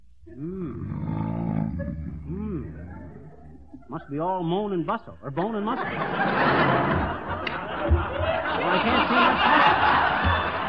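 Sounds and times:
loud snoring: 0:00.6 - 0:02.6
laughter: 0:01.4 - 0:04.4, 0:05.3 - 0:10.6
speech: 0:03.9 - 0:07.2, 0:07.9 - 0:10.0.

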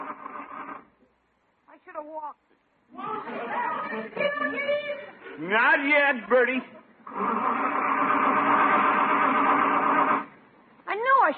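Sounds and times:
speech: 0:02.0 - 0:07.8
old car engine struggling to start: 0:07.1 - 0:10.3.

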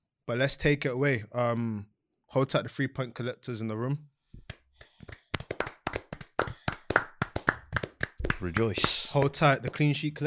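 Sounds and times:
speech: 0:00.3 - 0:04.1, 0:08.4 - 0:10.2
person clapping hands: 0:04.4 - 0:10.0.

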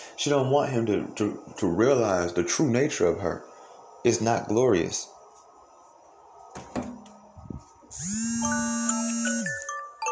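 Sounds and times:
speech: 0:00.2 - 0:05.2
alarm clock: 0:08.0 - 0:10.1.

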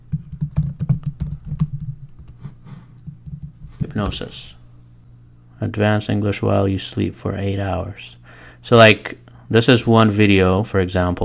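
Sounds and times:
typing on a computer keyboard to enter a YouTube search: 0:00.1 - 0:03.6
speech: 0:04.0 - 0:04.6, 0:05.6 - 0:11.2.

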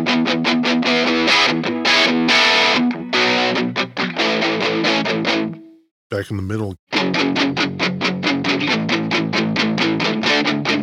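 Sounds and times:
electric guitar through overdrive pedal playing a riff: 0:00.0 - 0:05.6, 0:06.9 - 0:10.8
speech: 0:06.2 - 0:09.0.

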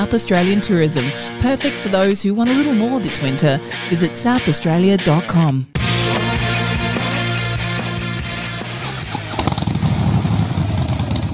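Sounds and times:
speech: 0:00.0 - 0:05.8
motorcycle engine revving: 0:05.9 - 0:11.3.

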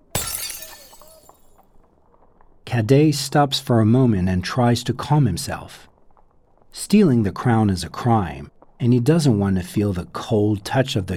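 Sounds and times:
priceless pitcher knocked over: 0:00.0 - 0:01.5
speech: 0:02.8 - 0:05.9, 0:06.8 - 0:11.1.

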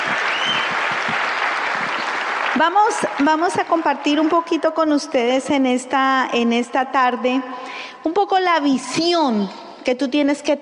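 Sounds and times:
audience applause: 0:00.0 - 0:03.9
speech: 0:02.6 - 0:10.6.

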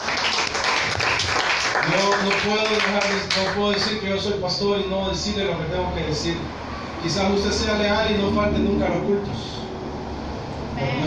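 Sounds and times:
audience applauding: 0:00.0 - 0:04.0
speech: 0:01.9 - 0:09.6, 0:10.8 - 0:11.0.

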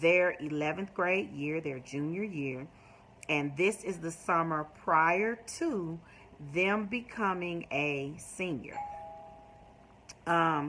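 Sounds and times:
speech: 0:00.0 - 0:08.9, 0:10.3 - 0:10.6
doorbell ringing: 0:08.7 - 0:09.8.

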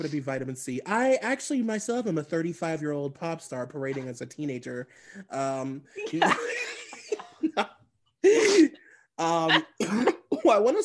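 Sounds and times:
speech: 0:00.0 - 0:06.9, 0:07.5 - 0:10.8
person laughing: 0:06.0 - 0:10.2
person gasping after accidentally swallowing cough drop: 0:08.2 - 0:09.1.

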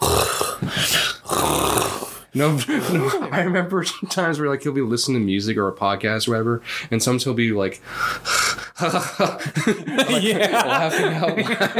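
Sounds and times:
voice imitating labored allergic breathing: 0:00.0 - 0:03.1, 0:07.8 - 0:08.8
speech: 0:02.3 - 0:11.7
laughter: 0:02.4 - 0:03.6, 0:08.6 - 0:11.7.

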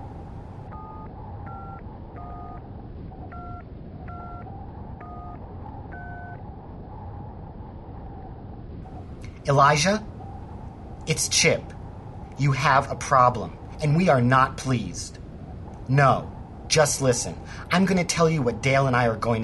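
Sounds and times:
low rumbling hum: 0:00.0 - 0:19.4
touch-tone beeps of a phone number being dialed: 0:00.7 - 0:02.6, 0:03.3 - 0:06.4
speech: 0:09.5 - 0:10.1, 0:11.1 - 0:11.8, 0:12.4 - 0:15.2, 0:15.9 - 0:19.4.

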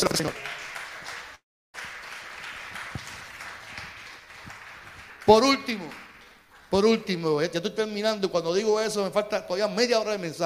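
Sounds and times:
speech: 0:00.0 - 0:00.5, 0:05.3 - 0:06.0, 0:06.7 - 0:10.4
audience applause: 0:00.0 - 0:07.0.

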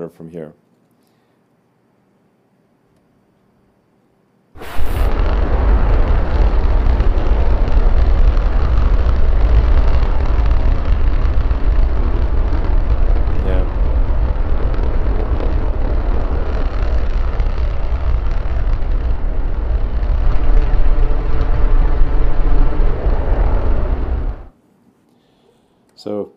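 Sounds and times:
Raptor rocket engine firing: 0:04.6 - 0:24.5.

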